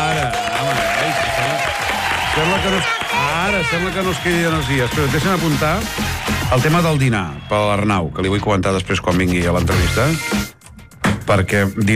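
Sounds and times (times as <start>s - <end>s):
audience applause at a Catalan radio show: 0.0s - 7.0s
speech: 2.6s - 10.5s, 11.3s - 11.9s.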